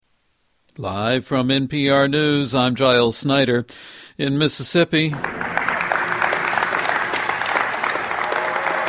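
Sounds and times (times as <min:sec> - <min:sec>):
speech: 0:00.8 - 0:05.6
warehouse workers applauding: 0:05.1 - 0:08.8.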